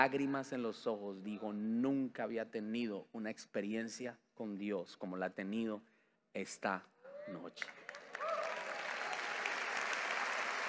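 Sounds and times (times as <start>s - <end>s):
speech: 0.0s - 8.0s
audience applause: 7.7s - 10.6s.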